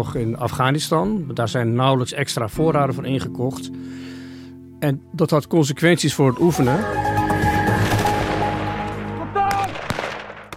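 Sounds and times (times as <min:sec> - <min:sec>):
speech: 0:00.0 - 0:04.2, 0:04.8 - 0:07.3
gunshots: 0:07.9 - 0:10.5.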